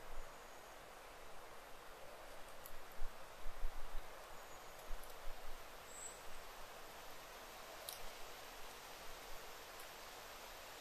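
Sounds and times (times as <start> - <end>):
wind hiss in leaves of a wilderness thicket: 0.0 - 10.7.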